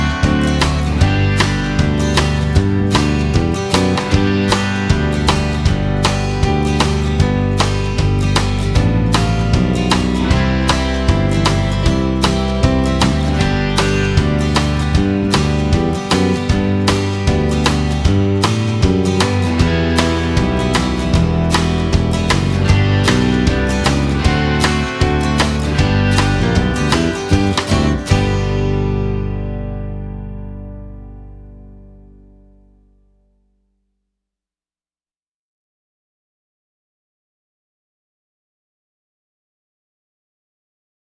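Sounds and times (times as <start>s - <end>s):
song without guitar: 0.0s - 32.1s.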